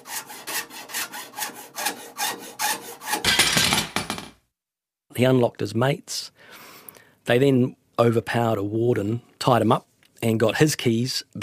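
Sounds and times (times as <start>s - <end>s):
hand saw cutting with back-and-forth strokes: 0.0s - 3.4s
speech: 5.2s - 6.2s, 7.3s - 11.4s.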